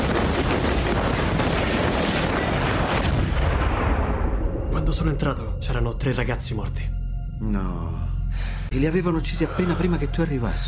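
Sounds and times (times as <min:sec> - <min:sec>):
gunshots: 0:00.0 - 0:03.7
speech: 0:05.0 - 0:10.6.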